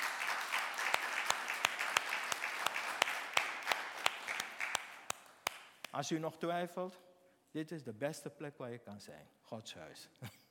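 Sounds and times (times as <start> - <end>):
audience applause: 0.0 - 5.6
speech: 6.0 - 10.4.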